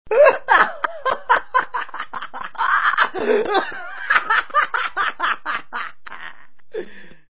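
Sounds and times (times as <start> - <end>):
person laughing: 0.1 - 7.1.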